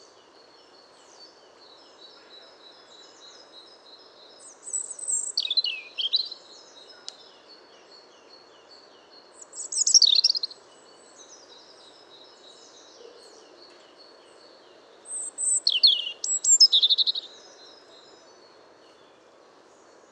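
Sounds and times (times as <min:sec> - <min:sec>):
European robin singing: 0:00.0 - 0:20.0.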